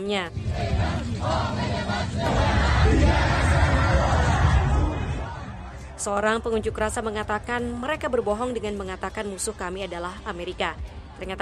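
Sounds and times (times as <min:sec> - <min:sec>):
speech: 0:00.0 - 0:03.4, 0:06.0 - 0:11.4
anti-government protest crowd shouting and chanting: 0:00.4 - 0:06.1.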